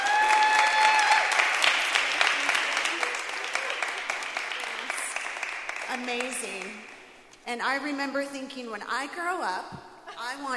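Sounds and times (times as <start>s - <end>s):
audience applause: 0.0s - 7.1s
speech: 6.1s - 10.5s.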